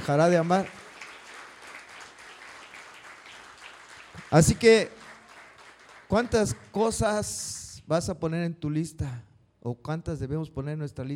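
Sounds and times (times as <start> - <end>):
speech: 0.0 - 0.8, 4.3 - 5.0, 6.1 - 11.1
audience applause: 0.0 - 6.8.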